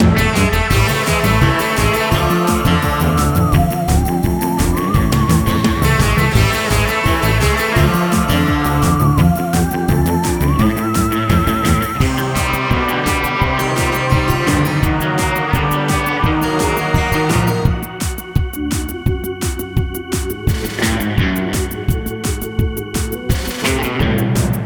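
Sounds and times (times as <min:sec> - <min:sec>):
intense combat music loop: 0:00.0 - 0:24.5.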